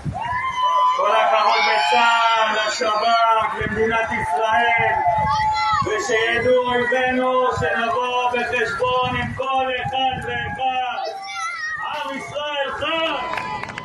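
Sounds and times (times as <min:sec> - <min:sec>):
beach crowd cheering: 0:00.1 - 0:13.8
crowd clapping: 0:13.0 - 0:13.8.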